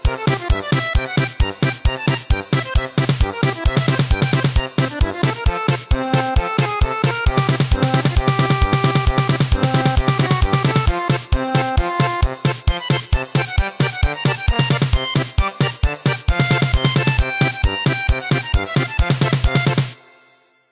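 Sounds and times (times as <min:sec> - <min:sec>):
traditional German polka schottische in MIDI: 0:00.0 - 0:20.2.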